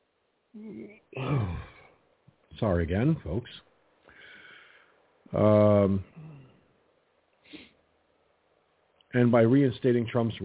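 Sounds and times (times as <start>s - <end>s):
speech: 0.5s - 1.7s, 2.6s - 3.7s, 5.3s - 6.3s, 9.1s - 10.4s
person yawning: 0.6s - 1.9s, 5.4s - 6.6s.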